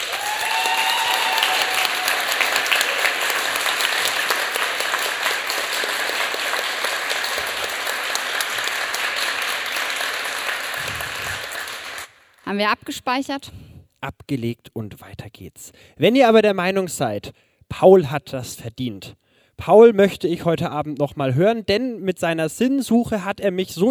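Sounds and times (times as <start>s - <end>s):
audience applause for a performer: 0.0s - 12.3s
speech: 12.6s - 23.8s.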